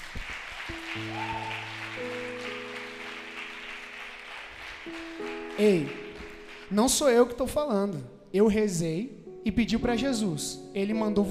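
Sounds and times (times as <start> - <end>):
applause: 0.0 - 7.1
speech: 5.6 - 6.0, 6.7 - 11.2.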